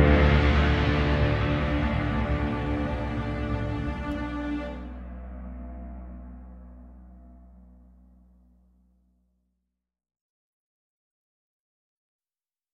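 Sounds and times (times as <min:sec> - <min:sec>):
Christmas carol backing music: 0:00.0 - 0:05.7.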